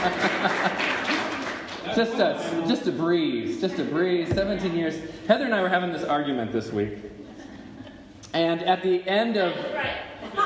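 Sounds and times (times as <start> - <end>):
speech: 0.0 - 0.3, 2.0 - 7.2, 8.3 - 9.9
audience clapping: 0.0 - 2.2
laughter: 0.0 - 2.7, 7.1 - 8.2, 10.2 - 10.4.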